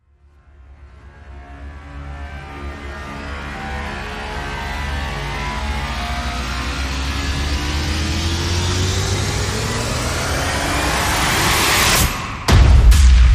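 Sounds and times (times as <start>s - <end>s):
long rise effect: 3.1s - 13.2s.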